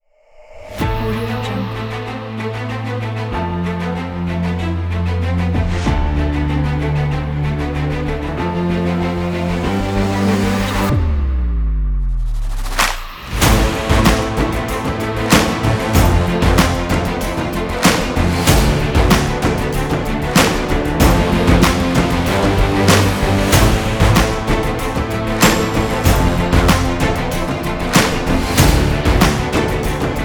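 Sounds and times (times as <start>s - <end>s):
epic sports music: 0.8s - 30.2s.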